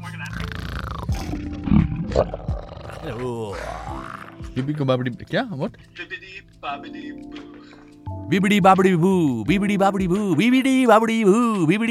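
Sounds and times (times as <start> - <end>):
human voice imitating a dragon roar: 0.2 - 1.5, 2.1 - 4.4
speech: 1.4 - 11.8.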